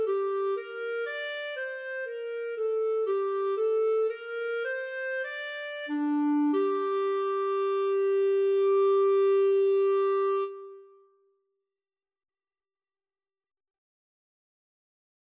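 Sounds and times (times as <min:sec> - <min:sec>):
bourree flute and clarinet duet: 0:00.0 - 0:11.0.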